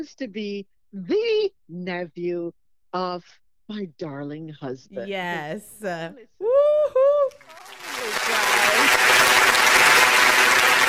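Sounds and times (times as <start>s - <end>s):
speech: 0.0s - 6.4s
crowd applause: 7.3s - 10.8s.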